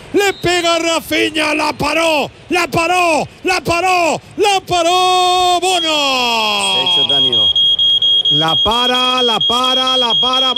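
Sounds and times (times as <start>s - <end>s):
speech: 0.2s - 7.5s, 8.3s - 10.5s
Berisur security alarm in an advert: 5.7s - 10.5s.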